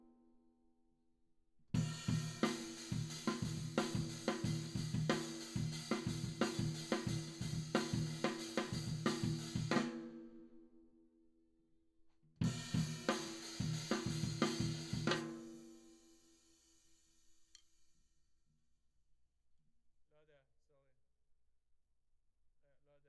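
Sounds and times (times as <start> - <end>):
tom drum: 1.8 - 10.1, 12.4 - 15.8.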